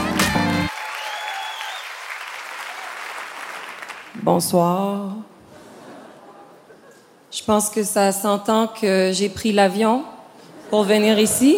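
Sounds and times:
audience applause welcoming a comedian: 0.0s - 4.1s
speech: 4.2s - 5.3s, 7.4s - 11.5s.

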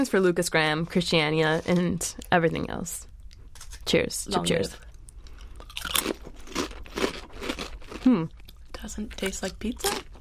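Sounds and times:
speech: 0.0s - 3.1s, 3.9s - 4.9s, 8.0s - 10.1s
ruffled potato chips being chewed: 4.9s - 10.1s.

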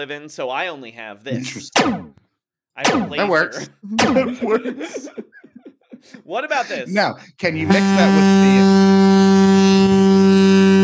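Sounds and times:
speech: 0.0s - 2.2s, 2.8s - 5.3s, 6.0s - 8.8s
laughter: 1.2s - 1.8s, 3.1s - 8.7s
foghorn sound effect blast: 7.6s - 10.8s.

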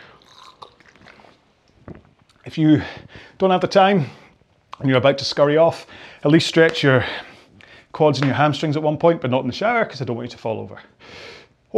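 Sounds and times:
person taking a quick drink, gulping and swallowing: 0.0s - 2.5s
speech: 2.5s - 4.2s, 4.8s - 7.3s, 7.9s - 11.7s.

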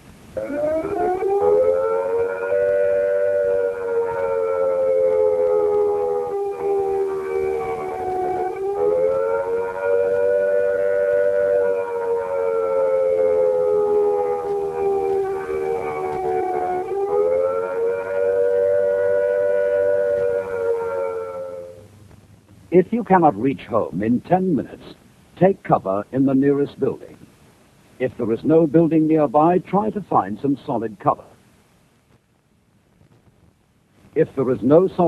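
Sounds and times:
civil defense attack warning siren wailing: 0.3s - 21.9s
speech: 0.4s - 0.6s, 22.8s - 27.1s, 28.0s - 31.2s, 34.2s - 35.0s.

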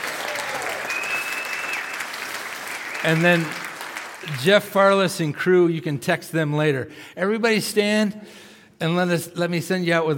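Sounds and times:
audience applause: 0.0s - 4.4s
speech: 3.0s - 3.6s, 4.2s - 10.1s.

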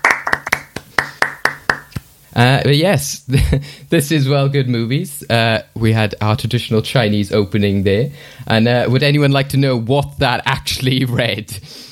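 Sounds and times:
audience applause: 0.0s - 1.9s
speech: 2.4s - 11.8s.

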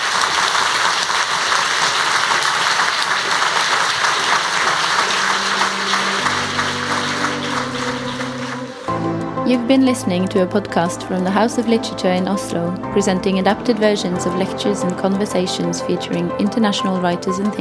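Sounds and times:
audience applause: 0.0s - 9.0s
low sustained musical tones: 4.9s - 15.8s
speech: 9.5s - 17.5s.

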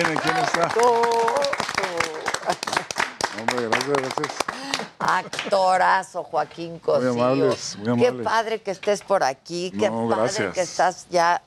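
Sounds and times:
small group clapping: 0.0s - 5.6s
speech: 0.0s - 11.4s.

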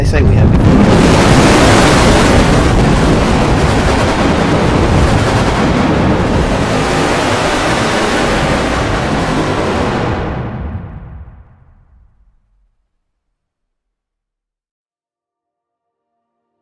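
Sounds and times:
bombs striking London in a World War III attack: 0.0s - 12.4s.

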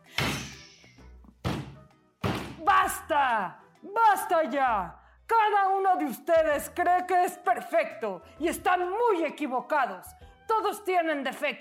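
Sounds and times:
staff striking the ground with booming thud: 0.1s - 0.8s, 1.4s - 2.7s
speech: 2.6s - 11.5s.

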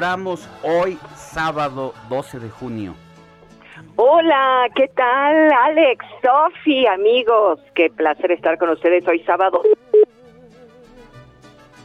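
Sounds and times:
speech: 0.0s - 3.1s, 3.8s - 9.8s
phone line tone after dropped call: 9.5s - 10.1s.

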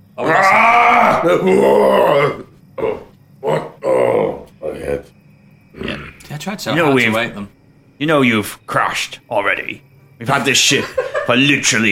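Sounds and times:
speech: 0.2s - 0.6s, 1.2s - 2.9s, 6.4s - 11.9s
person imitating monster roar: 0.2s - 5.1s, 5.8s - 6.2s
gruff grunts: 1.2s - 5.1s
laughter: 10.4s - 11.6s.

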